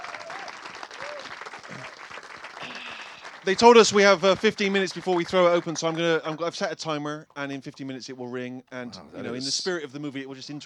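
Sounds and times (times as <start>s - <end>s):
audience applause: 0.0s - 6.5s
speech: 3.4s - 10.6s.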